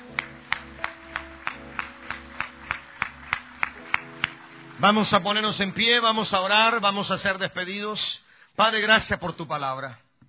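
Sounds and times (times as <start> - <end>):
audience clapping in unison: 0.0 - 5.2
speech: 4.8 - 10.0.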